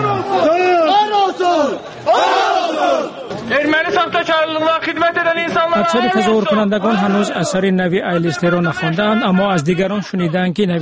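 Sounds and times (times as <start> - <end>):
protest crowd chanting: 0.0 - 3.4
speech: 3.6 - 10.8.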